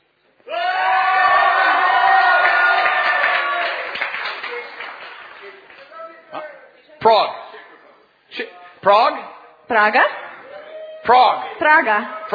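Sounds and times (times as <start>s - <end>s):
crowd of Israeli fans shouting and cheering: 0.4s - 4.8s, 10.4s - 11.6s
speech: 8.9s - 10.2s, 11.1s - 12.3s.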